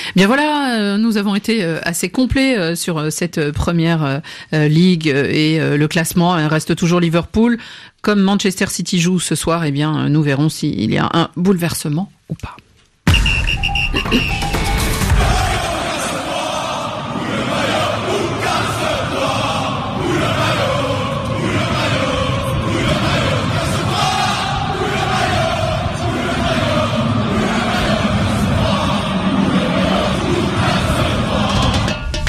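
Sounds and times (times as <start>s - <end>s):
speech: 0.1s - 12.6s, 14.1s - 14.6s
angry football fans shouting and chanting: 14.9s - 32.1s.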